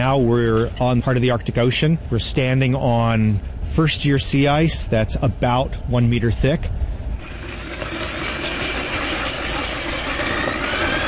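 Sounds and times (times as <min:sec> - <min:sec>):
speech: 0:00.0 - 0:06.9
drill boring through sea ice: 0:07.2 - 0:11.0.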